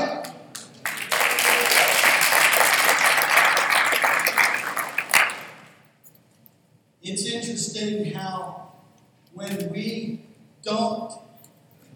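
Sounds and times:
audience clapping: 0.2s - 5.8s
speech: 7.8s - 8.7s, 9.4s - 11.0s.

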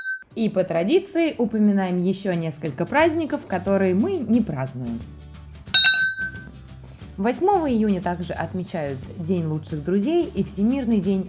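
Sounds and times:
speech: 0.4s - 5.2s, 7.2s - 11.2s
glasses clinking in a toast: 5.8s - 6.5s.

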